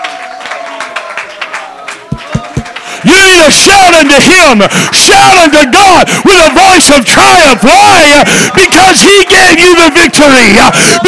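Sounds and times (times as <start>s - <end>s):
church congregation clapping: 0.0s - 8.0s
heavy thumps: 2.1s - 2.7s
speech: 3.0s - 11.0s.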